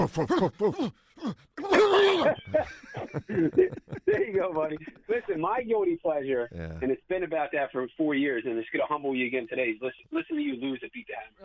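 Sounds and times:
man imitating a dog with yelping barks and howls: 0.0 - 2.4
speech: 0.0 - 11.4
laughter: 1.8 - 5.5.

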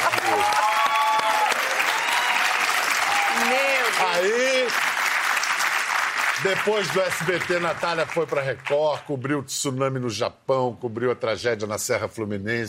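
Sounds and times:
audience applauding: 0.0 - 9.1
speech: 6.4 - 12.6.

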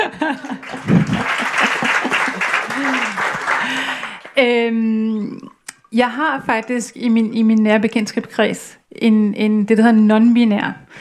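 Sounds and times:
laughter: 0.0 - 3.6
applause: 0.2 - 4.4
speech: 4.4 - 10.9.

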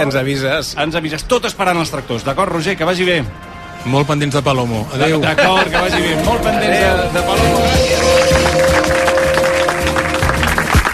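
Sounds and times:
speech: 0.0 - 8.6
laughter: 5.0 - 6.9
applause: 7.6 - 10.9.

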